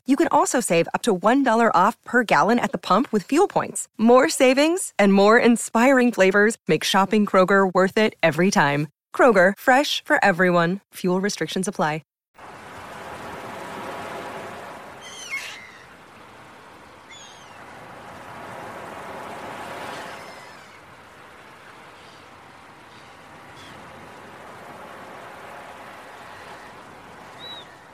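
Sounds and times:
speech: 0.1s - 12.1s
surf: 12.4s - 27.9s
gull calling: 14.8s - 27.9s.

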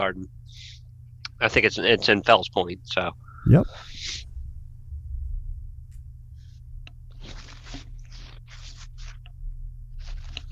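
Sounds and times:
speech: 0.0s - 0.8s, 1.4s - 4.3s
low steady hum: 0.0s - 10.4s
handwriting pen strokes on paper: 7.2s - 9.2s.

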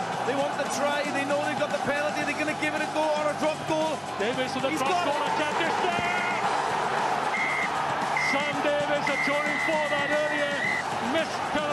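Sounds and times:
crowd roar: 0.0s - 11.7s
speech: 0.3s - 6.6s, 8.3s - 11.7s
referee whistle blast: 7.3s - 10.9s.

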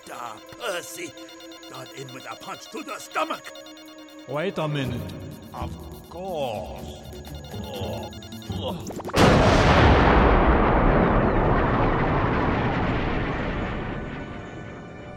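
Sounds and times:
speech: 0.1s - 10.2s
rocket fired into the jungle roaring: 9.2s - 14.3s.

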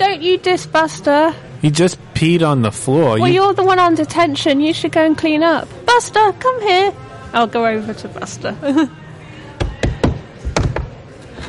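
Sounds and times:
speech: 0.0s - 9.0s
knuckles knocking on the door of a building: 9.6s - 10.9s.

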